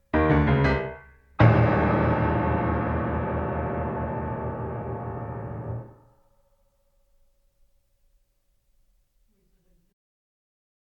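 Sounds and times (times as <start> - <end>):
piano: 0.0 - 7.8.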